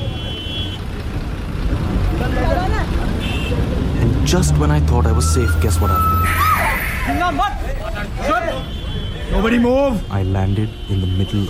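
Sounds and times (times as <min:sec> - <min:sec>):
bus engine rumble moving through traffic: 0:00.0 - 0:11.4
road noise: 0:00.0 - 0:11.4
speech: 0:04.3 - 0:11.4
brief squealing: 0:05.1 - 0:07.4.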